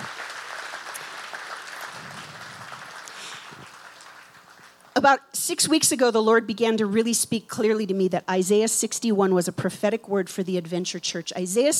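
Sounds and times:
audience applause: 0.0 - 4.9
speech: 5.0 - 11.7.

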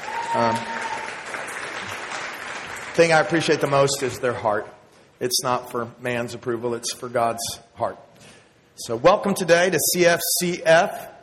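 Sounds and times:
audience clapping: 0.0 - 4.2
speech: 0.3 - 0.8, 3.0 - 11.1.

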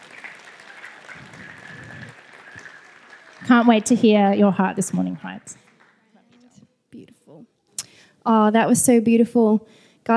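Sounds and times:
audience clapping to welcome a speaker: 0.0 - 6.5
speech: 3.4 - 5.7, 8.2 - 10.1.

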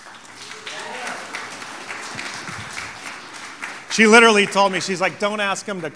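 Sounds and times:
audience applause: 0.0 - 5.9
laughter: 0.0 - 5.9
speech: 4.0 - 5.9.

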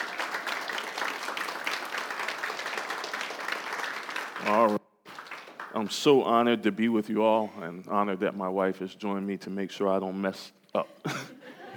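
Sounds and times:
crowd applauding: 0.0 - 6.2
speech: 4.4 - 4.8, 5.7 - 11.4
laughter: 11.0 - 11.7.

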